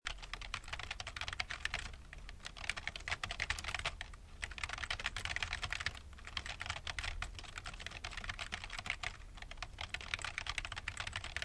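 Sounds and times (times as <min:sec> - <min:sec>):
typing on a keyboard: 0:00.1 - 0:11.4.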